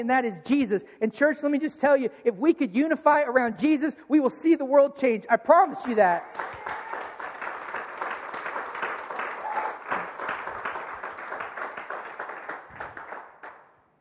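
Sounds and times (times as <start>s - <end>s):
speech: 0.0s - 6.8s
crowd audience clapping: 5.8s - 13.8s.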